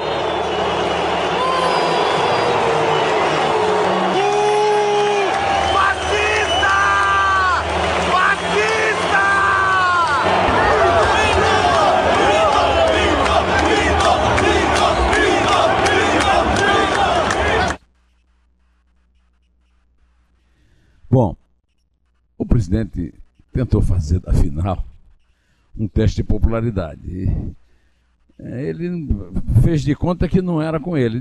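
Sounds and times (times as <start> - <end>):
stadium crowd booing and applauding: 0.0 - 17.8
speech: 22.8 - 24.9, 25.8 - 27.6, 28.4 - 31.2.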